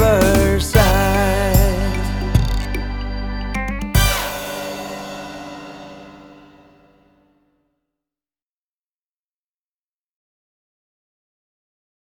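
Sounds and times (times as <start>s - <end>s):
play-along music track: 0.0s - 6.9s.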